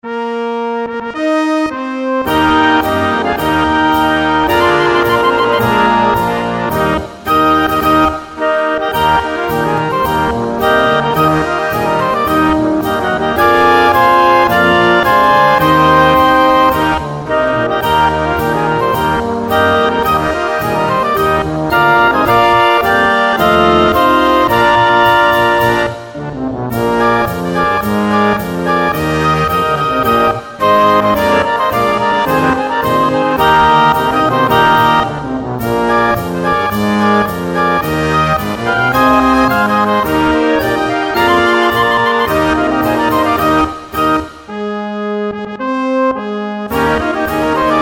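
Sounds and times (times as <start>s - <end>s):
Alpine march music: 0.0s - 47.7s.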